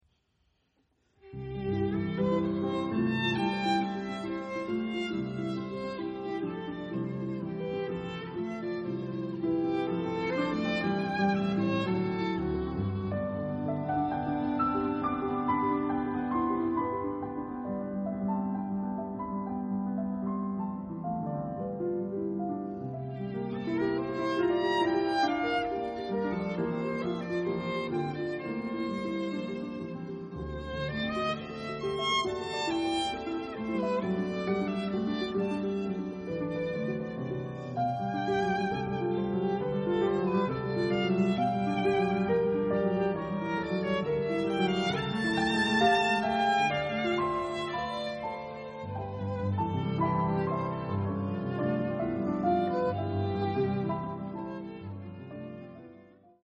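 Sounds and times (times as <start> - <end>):
violin and piano sonata: 1.2 - 56.4.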